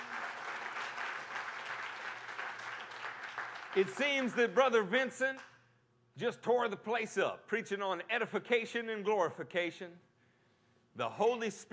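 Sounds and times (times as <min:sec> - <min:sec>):
audience hand clapping: 0:00.0 - 0:04.7
speech: 0:03.7 - 0:05.5, 0:06.2 - 0:10.1, 0:11.0 - 0:11.7.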